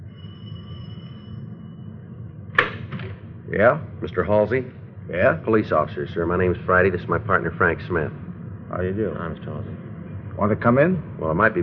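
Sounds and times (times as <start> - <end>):
doorbell ringing: 0.0 - 1.8
speech: 3.5 - 9.8, 10.4 - 11.6.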